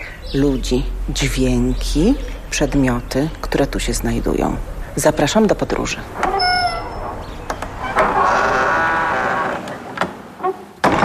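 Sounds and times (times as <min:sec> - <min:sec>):
speech: 0:00.3 - 0:06.4
gate creaking open: 0:05.9 - 0:11.0.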